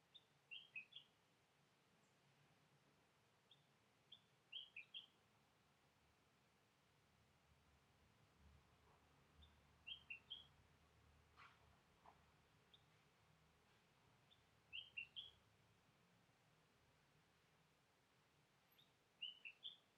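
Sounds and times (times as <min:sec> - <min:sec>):
birds calling pippiropi: 0:00.1 - 0:01.2, 0:03.5 - 0:05.2, 0:09.4 - 0:10.6, 0:12.7 - 0:13.0, 0:14.2 - 0:15.4, 0:18.7 - 0:19.9.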